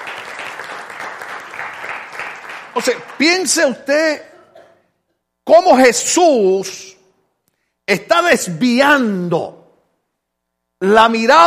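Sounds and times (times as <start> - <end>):
crowd applauding: 0.0 - 3.8
speech: 2.8 - 4.3, 5.5 - 7.0, 7.9 - 9.6, 10.8 - 11.4.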